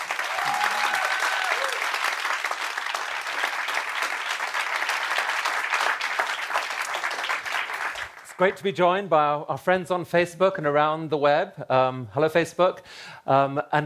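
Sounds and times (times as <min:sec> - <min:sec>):
audience applauding to welcome Yuval Noah Harari: 0:00.0 - 0:08.8
speech: 0:08.4 - 0:13.8.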